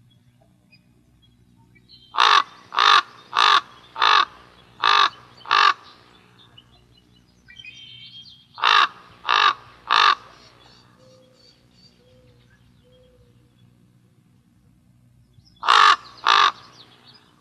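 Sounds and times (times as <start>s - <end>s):
corvids calling: 2.1s - 6.0s, 8.6s - 10.5s, 15.6s - 16.8s.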